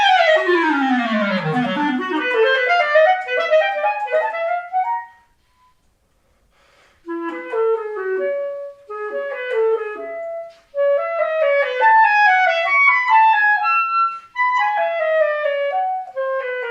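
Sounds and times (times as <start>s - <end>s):
clarinet: 0.0s - 5.9s, 7.0s - 16.7s.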